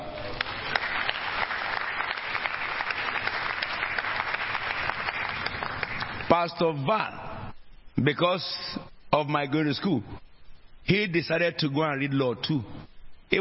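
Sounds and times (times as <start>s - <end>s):
crowd audience clapping: 0.0s - 6.4s
speech: 6.3s - 7.2s, 8.0s - 10.2s, 10.8s - 13.3s.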